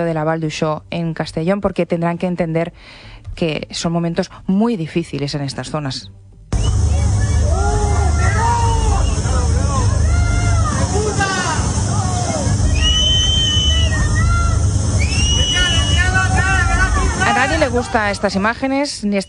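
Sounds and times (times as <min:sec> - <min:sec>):
speech: 0:00.0 - 0:06.2, 0:17.7 - 0:19.2
angry residents shouting at arriving politician Pedro Sánchez: 0:06.6 - 0:18.4.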